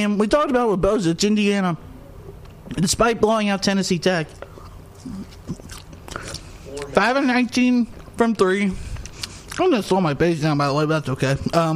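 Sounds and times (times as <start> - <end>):
speech: 0.0 - 1.9, 2.7 - 5.6, 6.8 - 8.9, 9.6 - 11.7
person chewing food: 4.4 - 7.0, 8.9 - 9.6.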